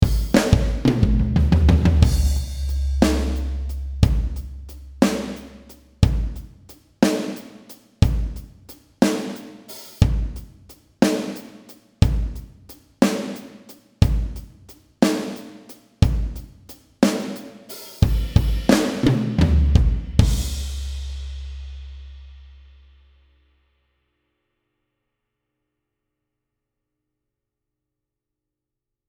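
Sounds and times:
Leedy big band drum kit: 0.0s - 22.6s.

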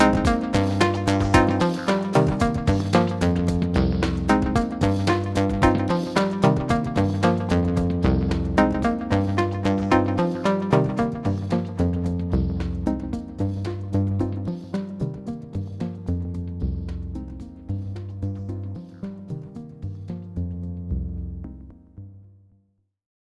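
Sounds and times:
synthesizer oscillator tone shaped by a filter envelope: 0.0s - 21.9s.

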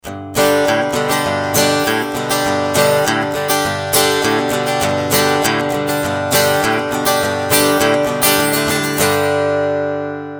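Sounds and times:
country music with high-boost EQ: 0.0s - 10.3s.

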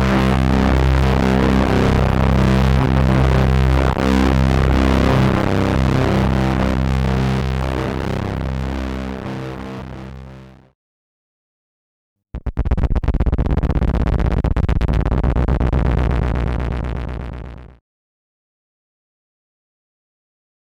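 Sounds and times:
bass drone: 0.0s - 10.7s, 12.4s - 17.8s.

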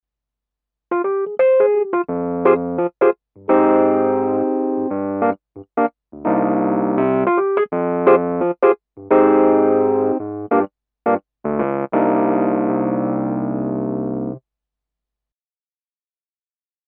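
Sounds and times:
Kurzweil Forte Rhodes 73 electric piano: 0.9s - 14.4s.

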